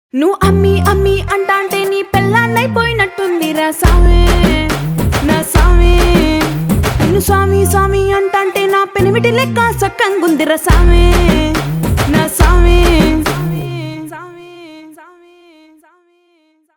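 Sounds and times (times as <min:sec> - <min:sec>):
promo background music: 0:00.4 - 0:14.2.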